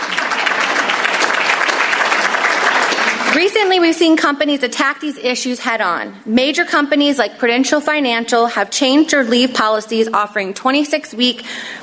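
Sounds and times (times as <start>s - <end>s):
audience clapping: 0.0s - 3.8s
speech: 3.3s - 11.8s.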